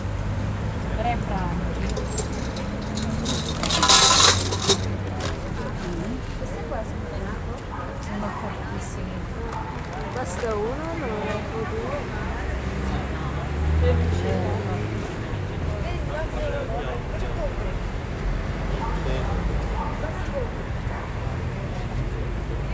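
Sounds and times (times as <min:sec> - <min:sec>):
market ambience: 0:00.0 - 0:22.7.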